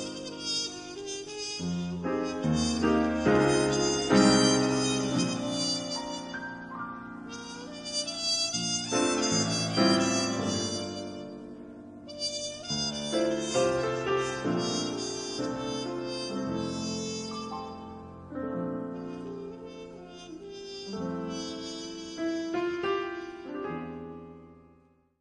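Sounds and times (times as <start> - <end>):
trumpet: 0.0 - 24.3
piano: 0.0 - 25.1.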